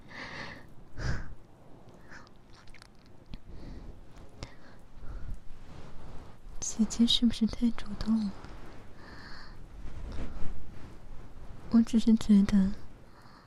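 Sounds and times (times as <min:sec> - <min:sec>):
heavy breathing: 0:00.0 - 0:01.4, 0:03.4 - 0:06.4, 0:08.3 - 0:10.7
speech: 0:06.8 - 0:08.4, 0:11.8 - 0:12.8.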